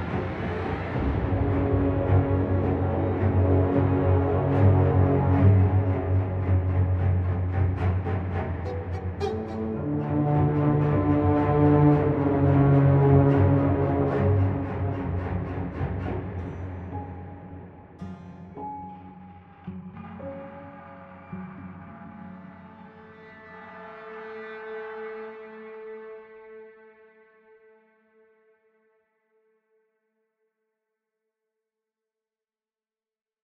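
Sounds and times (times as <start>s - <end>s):
theme music: 0.0s - 18.0s.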